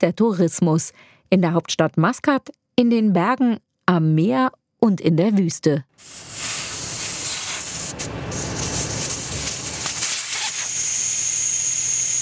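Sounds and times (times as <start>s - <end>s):
speech: 0.0s - 6.5s
air hissing out of off-road vehicle tyres: 6.0s - 11.1s.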